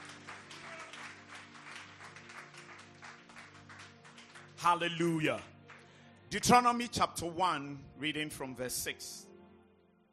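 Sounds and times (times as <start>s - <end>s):
audience clapping hands: 0.0s - 6.0s
speech: 4.6s - 5.5s, 6.3s - 9.3s.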